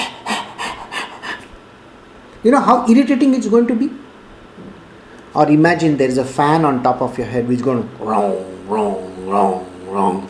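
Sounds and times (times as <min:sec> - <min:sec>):
person imitating a dog panting: 0:00.0 - 0:01.5, 0:08.0 - 0:10.2
speech: 0:02.4 - 0:04.0, 0:04.6 - 0:10.2.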